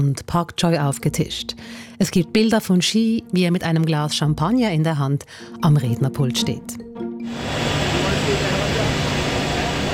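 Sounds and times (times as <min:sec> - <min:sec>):
speech: 0:00.0 - 0:07.6
helicopter engine and rotor noise: 0:07.3 - 0:09.9.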